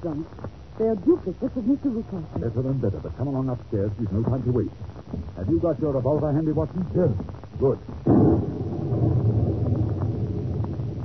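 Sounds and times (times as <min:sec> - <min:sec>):
speech: 0:00.0 - 0:08.5
thunder from a nearby lightning strike: 0:08.0 - 0:11.0.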